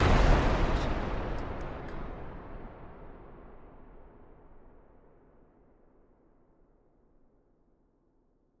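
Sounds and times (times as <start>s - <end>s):
explosion blast: 0.0s - 5.4s.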